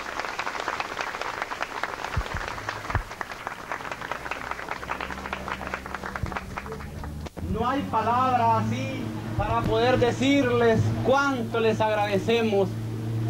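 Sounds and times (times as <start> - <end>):
warm audience applause: 0.0 - 7.4
speech: 7.6 - 13.2.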